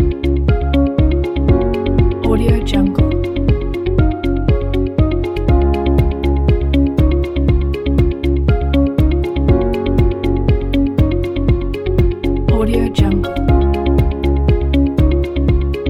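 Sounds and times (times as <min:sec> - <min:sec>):
corporate background music: 0:00.0 - 0:15.8.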